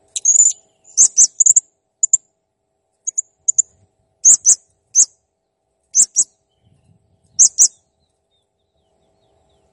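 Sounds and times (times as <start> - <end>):
blue-crowned hanging parrot chirps and squeaky trills: 0.1 - 2.2, 3.1 - 3.6, 4.2 - 5.1, 6.0 - 6.3, 7.4 - 7.8.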